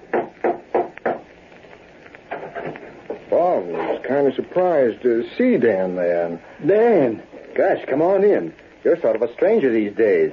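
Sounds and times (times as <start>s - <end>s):
knocking on a door: 0.1s - 1.2s
speech: 4.2s - 10.3s.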